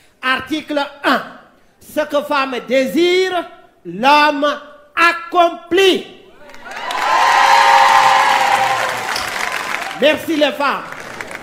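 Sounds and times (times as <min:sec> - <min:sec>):
speech: 0:00.2 - 0:06.2, 0:10.0 - 0:11.0
audience applause and cheering: 0:06.4 - 0:11.4.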